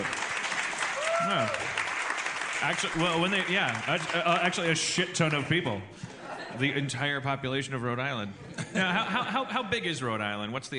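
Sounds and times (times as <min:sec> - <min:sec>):
audience clapping: 0:00.0 - 0:05.8
people whooping and calling out: 0:00.8 - 0:01.8
speech: 0:01.3 - 0:01.8, 0:02.6 - 0:10.7
laughter: 0:06.0 - 0:06.9, 0:08.4 - 0:09.7.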